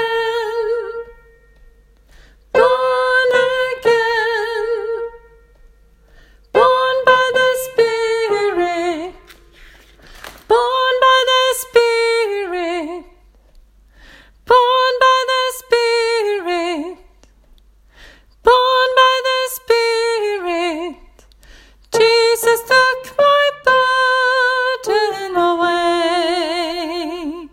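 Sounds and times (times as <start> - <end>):
soprano singing: 0.0 - 1.8, 2.5 - 5.7, 6.5 - 9.6, 10.4 - 13.3, 14.4 - 17.1, 18.4 - 21.0, 21.9 - 27.5.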